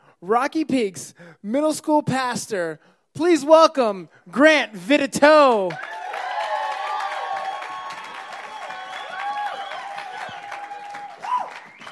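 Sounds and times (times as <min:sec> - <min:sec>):
speech: 0:00.2 - 0:05.9
audience applause: 0:05.7 - 0:11.9.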